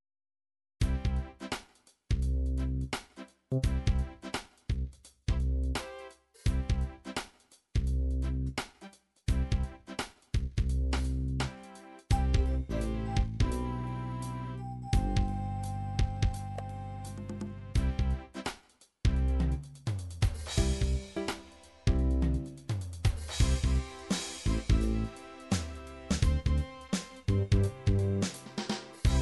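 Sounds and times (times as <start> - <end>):
16 beat MIDI beat: 0.8 - 14.3, 15.0 - 29.2.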